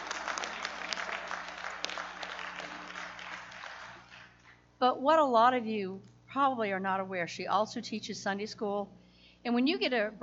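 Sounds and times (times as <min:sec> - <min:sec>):
applause: 0:00.0 - 0:04.4
speech: 0:04.8 - 0:10.2.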